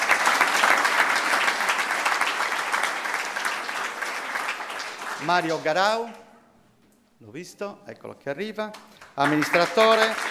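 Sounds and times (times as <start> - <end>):
audience applause: 0.0 - 6.1, 9.0 - 10.2
speech: 5.2 - 6.2, 7.2 - 10.2.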